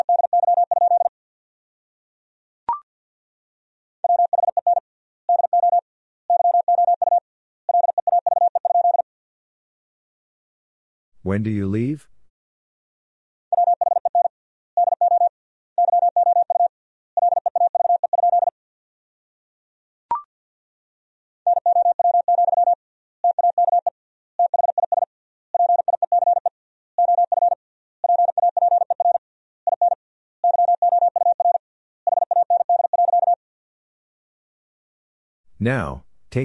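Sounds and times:
Morse code practice tones at 50 wpm: 0.0 - 1.1, 4.0 - 9.0, 13.5 - 18.5, 21.5 - 33.4
speech: 11.2 - 12.2, 35.6 - 36.4.

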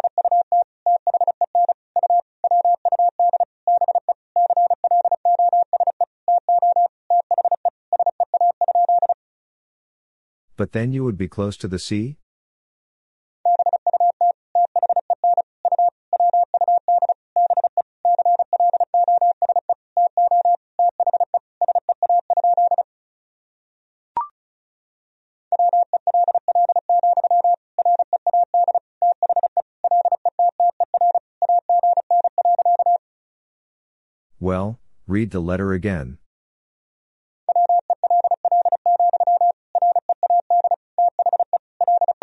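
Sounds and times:
Morse code tones at 35 wpm: 0.0 - 9.2, 13.5 - 22.8, 25.5 - 33.0, 37.5 - 42.2
speech: 10.6 - 12.2, 35.2 - 36.2.

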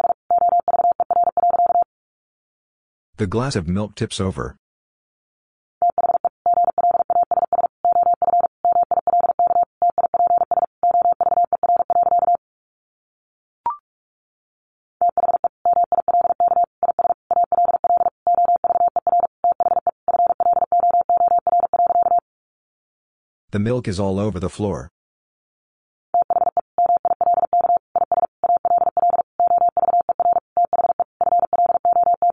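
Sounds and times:
Morse code beeps: 0.0 - 1.9, 5.8 - 12.4, 15.0 - 22.2, 26.2 - 32.3
speech: 3.2 - 4.6, 23.5 - 24.9.

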